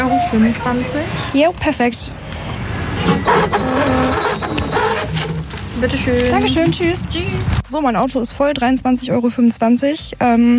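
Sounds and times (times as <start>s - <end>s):
speech: 0.3s - 5.2s, 5.8s - 10.5s
receipt printer printing a receipt: 3.1s - 6.7s.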